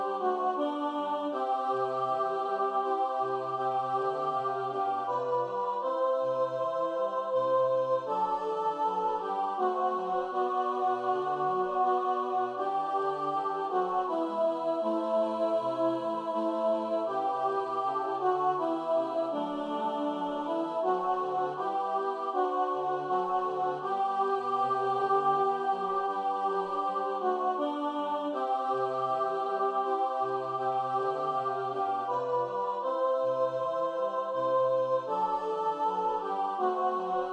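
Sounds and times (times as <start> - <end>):
alto voice: 0.0 - 37.3.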